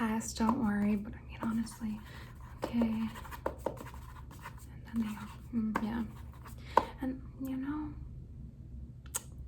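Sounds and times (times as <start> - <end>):
speech: 0.2 - 3.9, 4.9 - 6.2, 7.0 - 8.0
pen strokes scratching on paper writing notes: 0.5 - 6.6.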